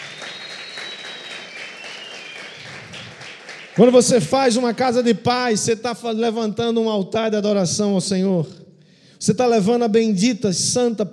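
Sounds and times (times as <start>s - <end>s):
audience applause: 0.0s - 4.2s
speech: 3.8s - 8.6s, 9.2s - 11.1s.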